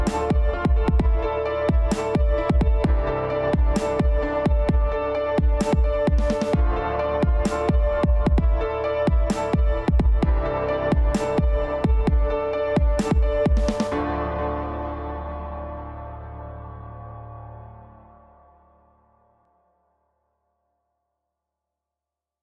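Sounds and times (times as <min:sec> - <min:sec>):
beat: 0:00.0 - 0:14.0.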